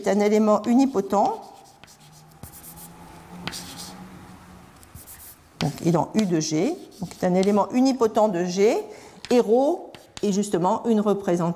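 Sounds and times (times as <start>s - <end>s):
speech: 0.0s - 1.5s, 5.8s - 11.5s
writing on a board during a lecture: 0.6s - 4.0s, 4.9s - 8.0s, 8.6s - 11.3s.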